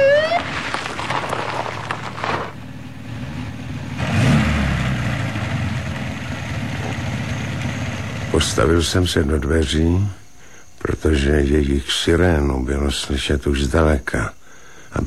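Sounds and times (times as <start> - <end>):
black-green Mercedes 220 car arriving and stopping: 0.0 - 9.0
speech: 8.4 - 10.2, 10.9 - 15.0.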